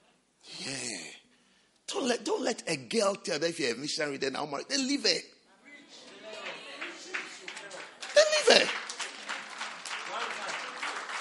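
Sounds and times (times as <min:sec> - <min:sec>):
speech: 0:02.0 - 0:05.3
audience clapping: 0:06.2 - 0:11.1.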